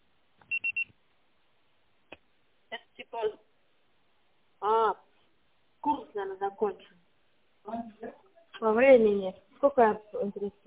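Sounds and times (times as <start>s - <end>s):
voicemail signal high-pitched electronic beeps: 0.5s - 0.9s
speech: 6.4s - 7.0s, 7.7s - 10.6s.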